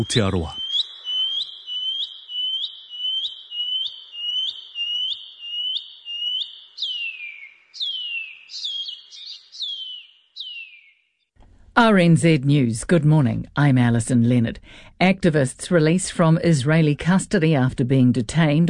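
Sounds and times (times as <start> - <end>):
speech: 0.0 - 0.6, 11.8 - 18.6
pipi wharauroa shining cuckoo call: 0.0 - 11.0.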